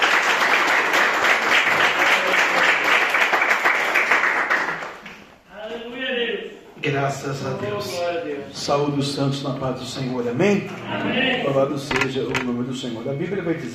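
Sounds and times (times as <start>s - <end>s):
audience applauding: 0.0s - 5.3s
speech: 6.9s - 13.7s.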